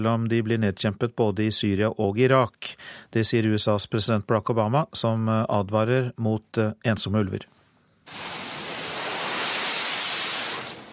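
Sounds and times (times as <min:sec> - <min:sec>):
speech: 0:00.0 - 0:08.4
jet plane taking off from aircraft carrier USS Wasp in the Mediterranean: 0:08.1 - 0:10.9.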